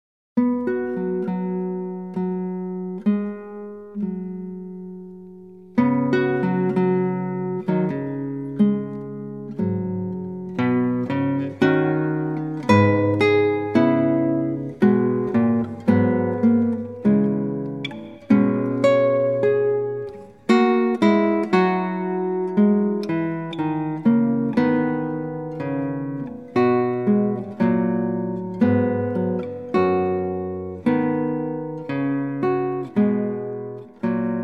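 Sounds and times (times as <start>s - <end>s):
sarabande: 0.4s - 34.4s.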